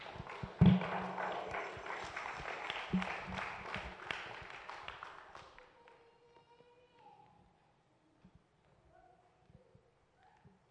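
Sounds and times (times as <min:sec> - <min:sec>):
audience clapping: 0:00.0 - 0:06.0.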